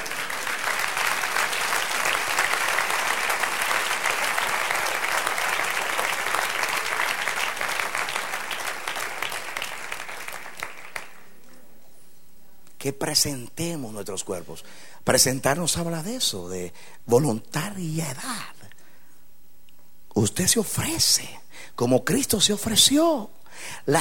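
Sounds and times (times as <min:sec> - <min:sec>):
audience applause: 0:00.0 - 0:11.4
speech: 0:12.8 - 0:18.5, 0:20.2 - 0:24.0.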